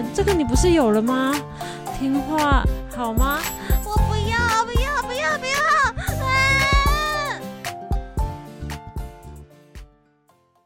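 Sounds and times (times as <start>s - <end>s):
speech: 0.0s - 5.8s
child making piercing noises in a store: 4.4s - 7.4s.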